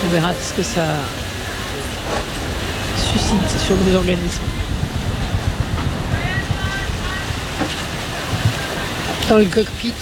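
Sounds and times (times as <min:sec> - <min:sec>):
rough sea water rushing around a sailing boat: 0:00.0 - 0:10.0
wind roaring around a sailing boat: 0:00.0 - 0:10.0
speech: 0:00.1 - 0:01.3, 0:03.0 - 0:04.6, 0:09.3 - 0:10.0
low irregular thumps: 0:02.2 - 0:09.2.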